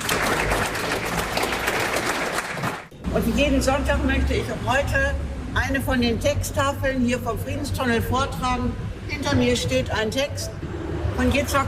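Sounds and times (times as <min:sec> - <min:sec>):
audience applause: 0:00.0 - 0:02.9
speech: 0:03.1 - 0:10.6, 0:11.2 - 0:11.6.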